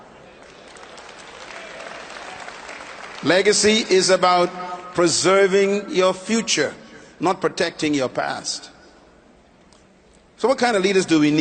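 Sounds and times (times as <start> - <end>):
audience clapping: 0.3 - 3.9
speech: 3.2 - 8.7, 10.4 - 11.3.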